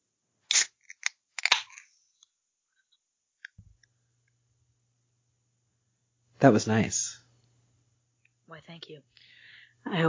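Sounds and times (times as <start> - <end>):
sparkling water can with orange and grapefruit flavors cracked open: 0.5 - 1.9
speech: 6.4 - 7.2, 8.6 - 10.0.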